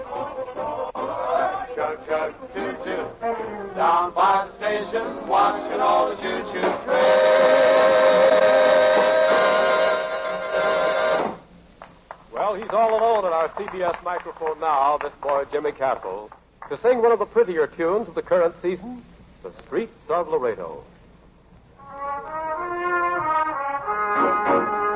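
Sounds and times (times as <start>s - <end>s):
music: 0.0s - 11.4s, 21.8s - 24.9s
speech: 1.9s - 8.6s, 12.5s - 21.0s
train chugging sound effect: 6.9s - 11.4s
train steam whistle sound effect: 6.9s - 11.4s, 21.8s - 24.9s.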